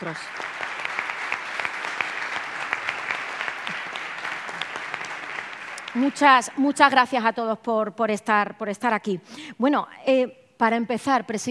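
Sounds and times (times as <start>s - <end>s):
speech: 0.0s - 0.6s, 6.0s - 11.4s
audience applause: 0.0s - 6.6s.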